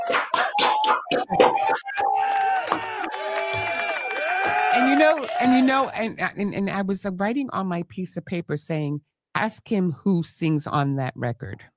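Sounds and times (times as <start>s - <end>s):
applause: 0.0s - 6.0s
speech: 5.0s - 11.7s.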